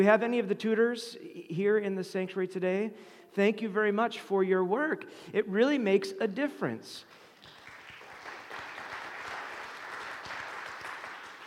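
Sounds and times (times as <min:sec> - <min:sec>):
speech: 0:00.0 - 0:07.2
audience clapping: 0:07.1 - 0:11.4.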